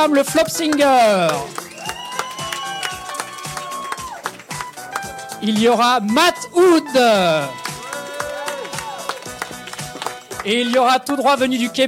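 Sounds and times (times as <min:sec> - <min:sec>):
speech: 0:00.0 - 0:01.7, 0:05.4 - 0:07.6, 0:10.4 - 0:11.8
crowd applauding: 0:00.3 - 0:05.7, 0:06.8 - 0:11.2
cheering: 0:01.5 - 0:04.4, 0:07.4 - 0:09.4.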